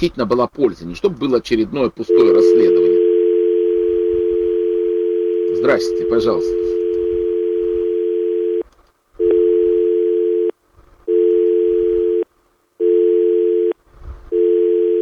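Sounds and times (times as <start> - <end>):
speech: 0.0 - 3.0, 5.6 - 6.7
telephone dial tone: 2.1 - 10.5, 11.1 - 12.2, 12.8 - 14.9.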